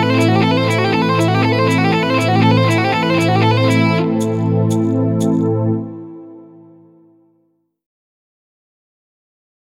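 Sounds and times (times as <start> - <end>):
metal music: 0.0 - 6.0.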